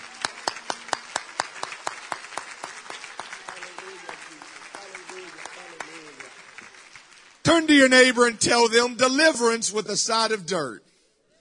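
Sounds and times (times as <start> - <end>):
crowd clapping hands in a steady quick rhythm: 0.0 - 8.6
speech: 7.5 - 10.9.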